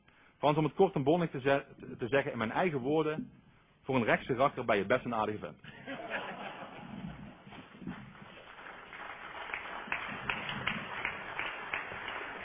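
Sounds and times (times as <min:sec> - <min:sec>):
speech: 0:00.4 - 0:06.0
laughter: 0:05.6 - 0:07.5
audience applause: 0:06.5 - 0:12.4.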